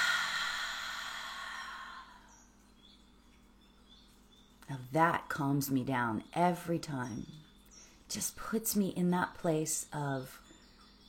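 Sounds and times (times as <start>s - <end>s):
deep breath in through the nose, then breathing out: 0.0s - 2.4s
speech: 4.7s - 7.4s, 8.1s - 10.4s.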